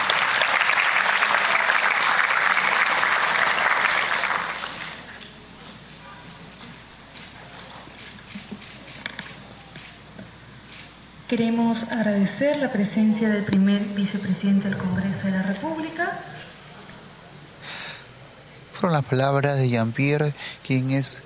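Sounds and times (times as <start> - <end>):
crowd clapping: 0.0 - 5.4
speech: 11.3 - 16.5, 18.8 - 21.2.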